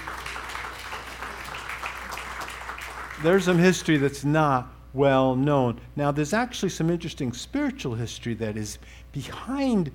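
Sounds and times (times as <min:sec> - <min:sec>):
faint audience applause during a talk on history: 0:00.0 - 0:04.0
speech: 0:03.2 - 0:09.9.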